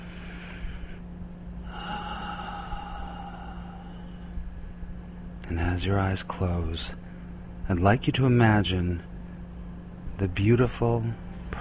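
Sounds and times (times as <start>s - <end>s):
deep breath in through the nose and out through the mouth: 0.0s - 1.0s, 1.6s - 5.1s
steady low hum: 0.0s - 11.5s
speech: 5.5s - 7.0s, 7.7s - 9.1s, 10.2s - 11.5s.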